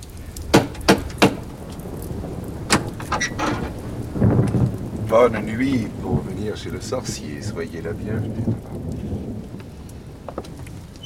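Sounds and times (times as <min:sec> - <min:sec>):
steady rain-like rumble: 0:00.0 - 0:11.0
knocking on a wooden door: 0:00.5 - 0:01.4
speech: 0:05.1 - 0:09.1.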